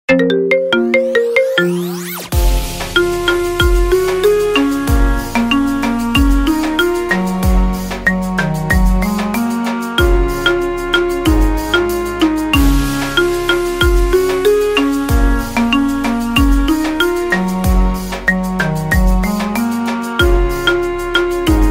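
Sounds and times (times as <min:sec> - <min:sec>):
marimba remix ringtone: 0:00.0 - 0:09.2, 0:10.0 - 0:17.6, 0:18.2 - 0:21.7.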